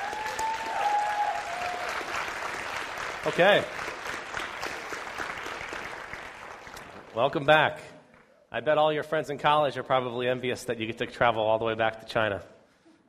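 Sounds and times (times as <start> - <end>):
audience clapping: 0.0 - 8.4
speech: 3.2 - 3.8, 7.2 - 7.9, 8.5 - 12.5.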